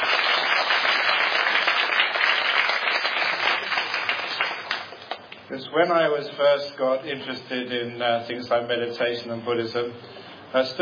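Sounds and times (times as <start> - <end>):
audience round of applause: 0.0 - 5.2
speech: 5.5 - 10.8.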